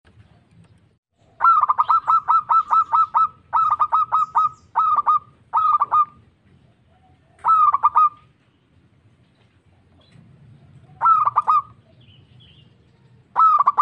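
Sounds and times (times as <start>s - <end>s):
zebra dove cooing: 1.2s - 8.4s, 10.0s - 12.1s, 13.3s - 13.8s.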